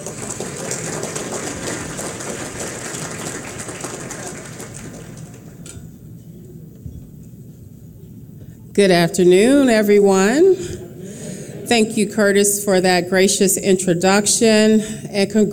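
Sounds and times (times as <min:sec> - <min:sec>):
crowd applauding: 0:00.0 - 0:05.6
speech: 0:08.8 - 0:10.8, 0:11.7 - 0:15.5
laughter: 0:10.6 - 0:12.2.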